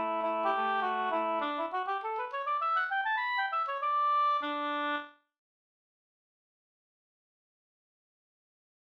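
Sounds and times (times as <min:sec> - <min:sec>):
slängpolska folk dance tune: 0:00.0 - 0:05.0.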